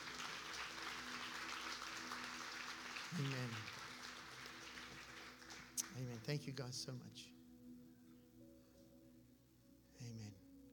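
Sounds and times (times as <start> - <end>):
audience clapping: 0.0 - 6.8
speech: 3.1 - 3.7, 6.0 - 7.4, 10.1 - 10.4.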